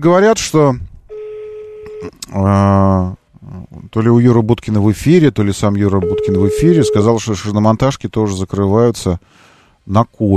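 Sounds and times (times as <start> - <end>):
speech: 0.0 - 0.9, 2.0 - 3.2, 3.9 - 10.3
telephone dialing tones: 1.1 - 2.1, 6.0 - 7.2.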